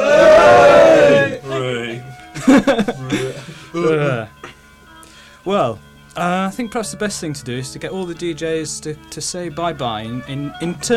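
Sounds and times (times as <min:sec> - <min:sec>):
group cheering: 0:00.0 - 0:01.8
laughter: 0:02.3 - 0:04.3
speech: 0:06.6 - 0:10.9.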